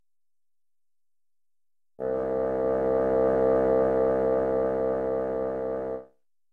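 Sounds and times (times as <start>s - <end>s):
bassoon playing C2: 2.0s - 6.1s.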